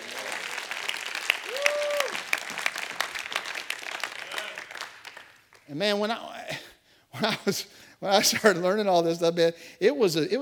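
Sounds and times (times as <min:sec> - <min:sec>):
crowd clapping: 0:00.0 - 0:05.7
speech: 0:05.7 - 0:06.6, 0:07.2 - 0:10.3.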